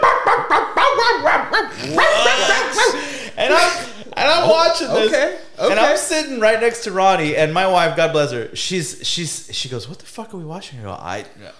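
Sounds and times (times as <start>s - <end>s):
man imitating a dog barking: 0.0s - 2.9s
laughter: 0.0s - 6.0s
speech: 0.5s - 11.5s.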